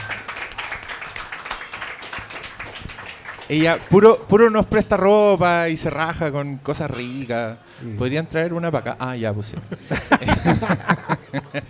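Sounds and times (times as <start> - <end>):
crowd applause: 0.0 - 4.0
speech: 3.5 - 11.6
laughter: 9.5 - 11.6.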